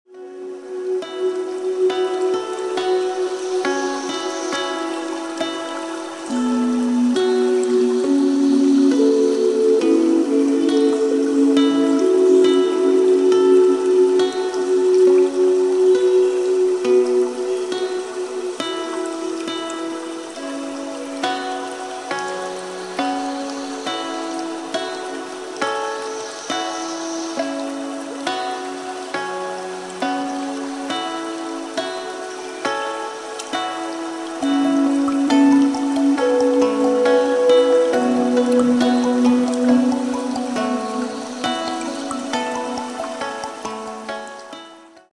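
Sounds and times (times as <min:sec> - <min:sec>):
relaxing music: 0:00.0 - 0:45.1.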